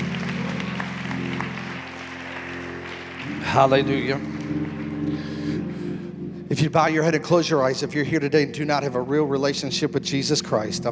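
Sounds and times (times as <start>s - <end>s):
crowd clapping: 0.0s - 6.0s
sustained organ-like chord: 0.0s - 10.9s
speech: 3.5s - 4.3s, 6.6s - 10.9s.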